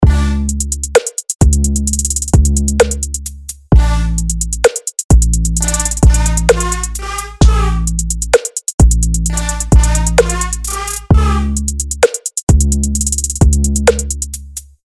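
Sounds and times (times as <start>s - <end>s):
trap beat: 0.0s - 14.7s.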